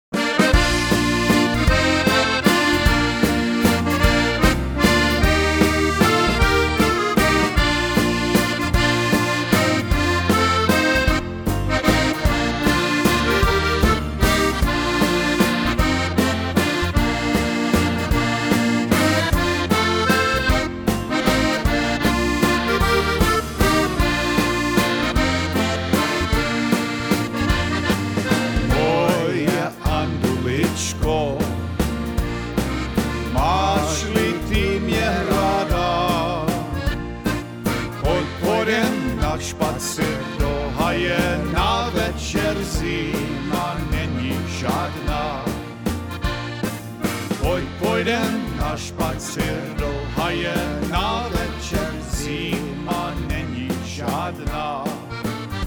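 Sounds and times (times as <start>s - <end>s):
waltz music: 0.0s - 55.6s.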